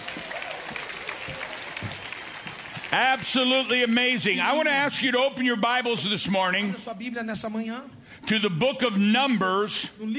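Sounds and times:
audience applauding: 0:00.0 - 0:04.9
speech: 0:02.9 - 0:10.1.

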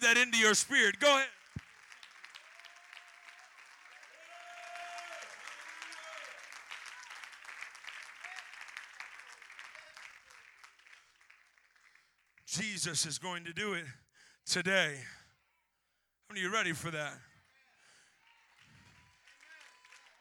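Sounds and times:
audience clapping hands: 0:00.0 - 0:12.8, 0:18.6 - 0:20.2
speech: 0:00.1 - 0:01.4, 0:12.8 - 0:15.2, 0:16.3 - 0:17.3.

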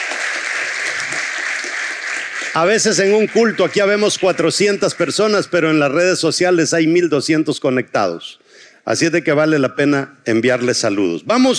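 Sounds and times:
crowd applause: 0:00.0 - 0:05.2
speech: 0:02.6 - 0:11.5.

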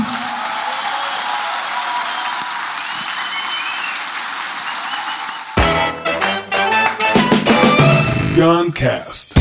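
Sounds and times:
audience applause: 0:00.0 - 0:07.5
speech: 0:08.4 - 0:09.3.

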